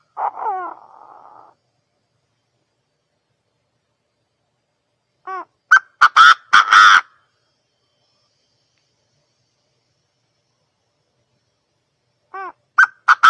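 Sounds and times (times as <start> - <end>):
partridge calls: 0.0 - 1.6, 5.2 - 7.2, 12.3 - 13.2.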